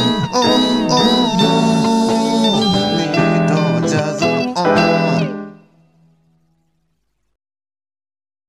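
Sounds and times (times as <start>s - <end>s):
jazz music: 0.0s - 6.1s.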